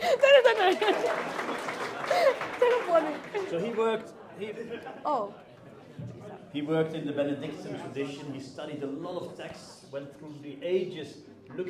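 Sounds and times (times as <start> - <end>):
audience applause: 0.0 - 4.0
laughter: 0.0 - 5.5
speech: 3.5 - 11.6.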